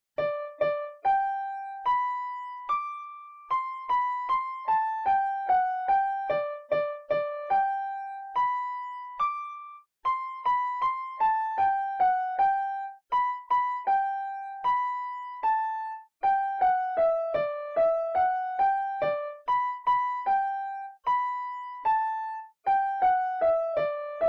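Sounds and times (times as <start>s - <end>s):
one-handed piano melody: 0.2s - 24.2s.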